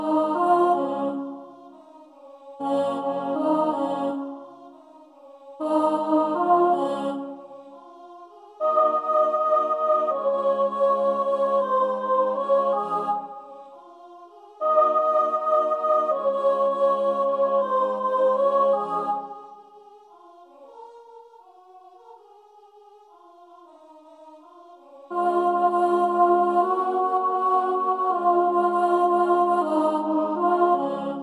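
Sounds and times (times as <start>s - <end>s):
soprano singing: 0.0s - 1.7s, 2.6s - 4.7s, 5.6s - 7.5s, 8.6s - 13.4s, 14.6s - 19.4s, 25.1s - 31.2s.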